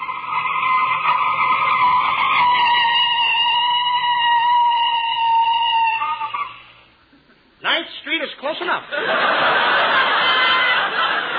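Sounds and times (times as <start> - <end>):
car tires screeching in a skid to a stop: 0.0 - 6.5
laughter: 8.9 - 11.3.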